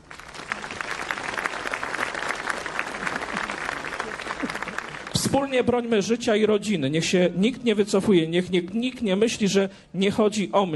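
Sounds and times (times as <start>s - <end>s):
audience applause: 0.0s - 5.4s
speech: 5.3s - 10.7s.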